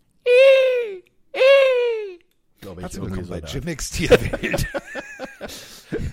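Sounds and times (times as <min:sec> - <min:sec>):
person imitating a falcon's cry: 0:00.3 - 0:02.2
speech: 0:02.7 - 0:06.0
laughter: 0:04.0 - 0:06.1.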